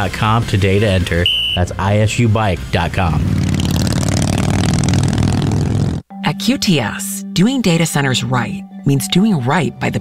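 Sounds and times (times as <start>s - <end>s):
speech: 0.0s - 3.6s, 6.4s - 9.9s
custom motorcycle engine revving: 0.0s - 6.1s.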